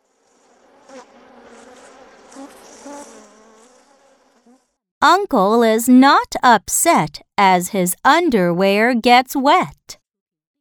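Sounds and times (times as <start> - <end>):
bugs buzzing: 0.0 - 5.9
speech: 5.0 - 10.0.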